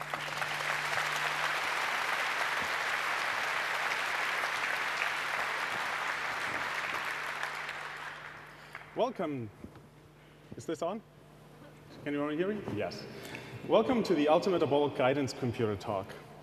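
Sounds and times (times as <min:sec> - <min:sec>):
sustained audience applause: 0:00.0 - 0:09.0
speech: 0:09.0 - 0:09.7, 0:10.6 - 0:11.1, 0:12.0 - 0:16.2.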